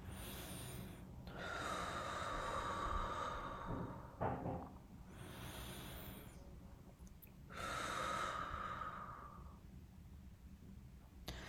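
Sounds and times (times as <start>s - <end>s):
heavy deep breathing: 0.0s - 6.4s, 7.5s - 9.6s.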